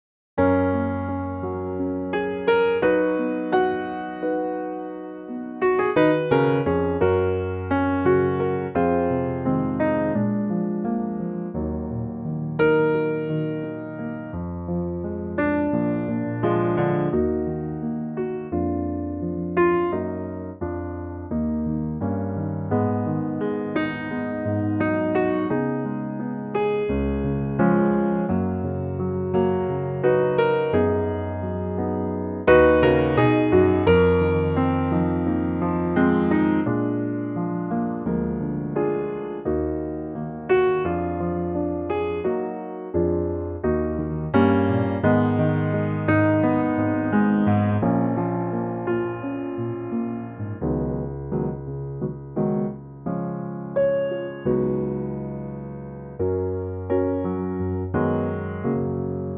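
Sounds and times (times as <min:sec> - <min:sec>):
piano in G flat: 0:00.4 - 0:59.3.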